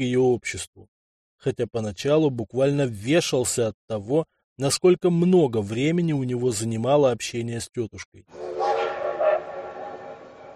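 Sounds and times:
speech: 0.0s - 8.6s
steam locomotive whistle: 8.4s - 10.5s.

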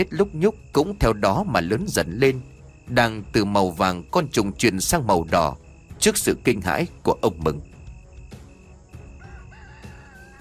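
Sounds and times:
speech: 0.0s - 7.7s
rooster in a chicken cage outside a woodshed door crowing: 9.0s - 10.4s.

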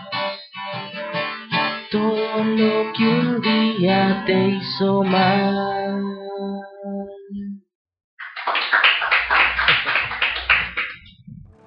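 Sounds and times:
speech: 1.9s - 6.0s
hands clapping: 8.2s - 11.1s
electronic music with pulsing tones: 10.6s - 11.6s.

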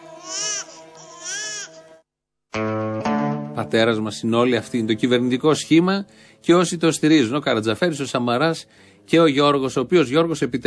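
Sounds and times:
infant wailing: 0.0s - 2.0s
speech: 3.6s - 10.6s.

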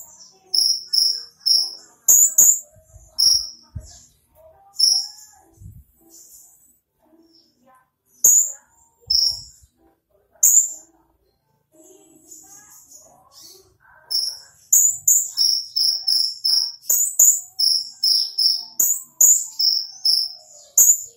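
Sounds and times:
small bird song of clear piercing high chirps: 0.0s - 9.7s, 10.4s - 10.9s, 12.2s - 21.1s.

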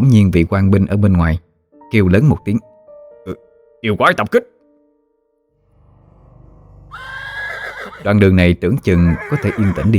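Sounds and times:
speech: 0.0s - 4.5s, 8.0s - 9.9s
panicking horse snorting: 6.4s - 8.1s, 8.9s - 9.9s
panicking horse neighing: 6.8s - 8.2s, 8.8s - 9.9s.

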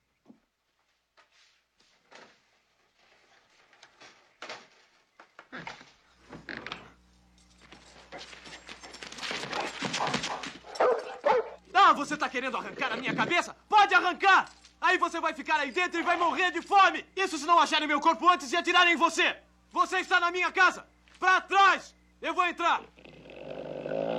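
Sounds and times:
dog barking and yipping in a dubbed film scene: 8.1s - 11.7s
speech: 12.0s - 23.0s.

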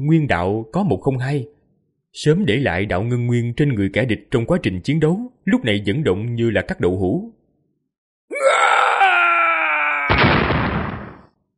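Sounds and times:
speech: 0.0s - 7.4s
loud drawn-out dying scream: 8.3s - 11.1s.

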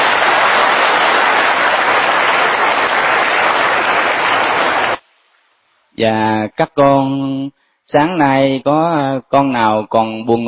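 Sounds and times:
loud applause from audience: 0.0s - 5.0s
speech: 6.0s - 10.4s.

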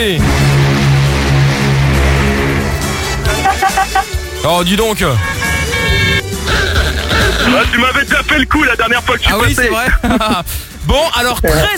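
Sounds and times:
speech: 0.0s - 0.5s, 3.9s - 5.6s, 7.3s - 11.7s
low truck engine rumble: 0.0s - 10.8s
loud steady truck horn blaring: 0.3s - 6.6s
laughter: 6.4s - 8.4s, 9.2s - 10.6s.

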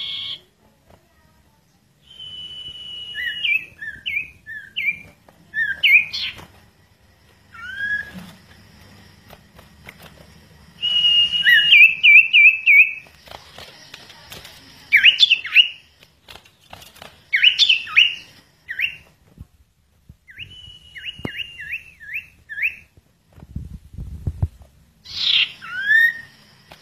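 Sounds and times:
bird song of long and slurred whistles: 0.0s - 0.4s, 2.0s - 6.4s, 7.5s - 8.4s, 10.8s - 13.1s, 14.9s - 15.9s, 17.3s - 19.1s, 20.2s - 22.9s, 25.0s - 26.4s.

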